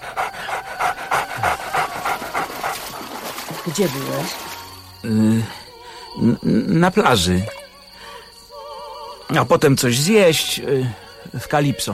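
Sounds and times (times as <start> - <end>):
dog panting: 0.0 - 3.6
speech: 3.8 - 7.6, 9.3 - 11.9.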